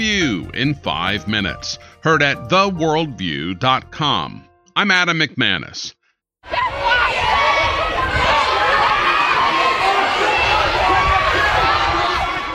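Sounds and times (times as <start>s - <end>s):
speech: 0.0s - 6.7s
crowd shouting storming a hospital: 6.4s - 12.5s.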